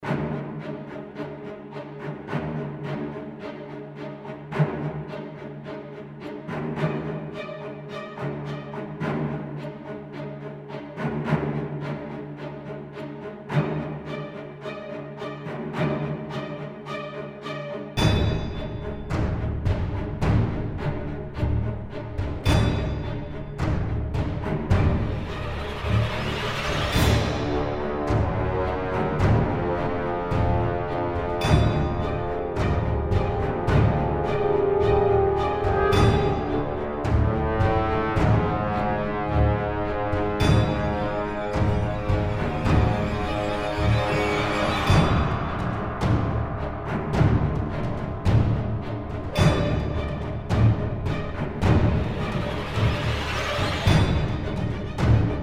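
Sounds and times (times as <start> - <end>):
string intro: 0.0 - 55.4
aggressive battle music loop: 18.0 - 55.4.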